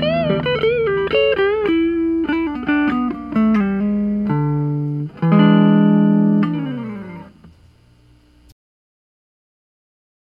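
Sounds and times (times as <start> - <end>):
guitar playing for a pickup test: 0.0 - 7.5.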